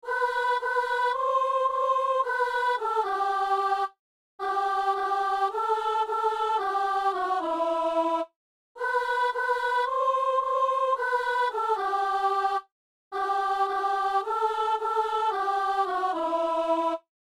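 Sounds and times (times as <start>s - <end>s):
soprano singing: 0.0s - 17.0s.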